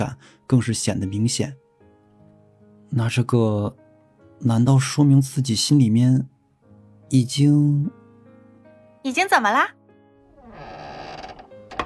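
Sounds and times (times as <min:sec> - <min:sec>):
speech: 0:00.0 - 0:01.6, 0:02.9 - 0:03.8, 0:04.4 - 0:06.3, 0:07.1 - 0:08.0, 0:09.0 - 0:09.8
creaking door opening: 0:10.2 - 0:11.8.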